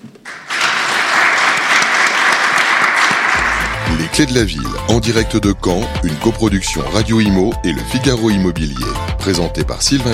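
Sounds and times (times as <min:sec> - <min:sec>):
audience applause: 0:00.2 - 0:04.4
speech: 0:04.2 - 0:10.1.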